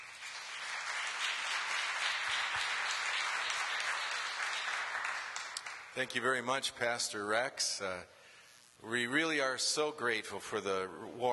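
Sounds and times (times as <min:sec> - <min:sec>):
church audience applause welcoming a speaker: 0:00.0 - 0:06.0
speech: 0:06.0 - 0:08.2, 0:08.8 - 0:11.3.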